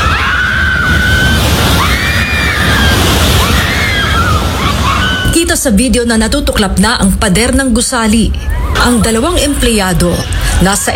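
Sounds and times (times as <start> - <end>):
people screaming during earthquake in General Santos: 0.0 - 5.6, 8.4 - 9.1
speech: 5.6 - 10.9.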